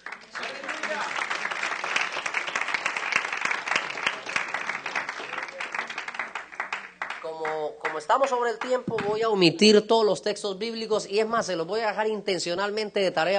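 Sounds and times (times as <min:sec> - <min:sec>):
audience applause: 0:00.0 - 0:08.8
speech: 0:08.0 - 0:13.3.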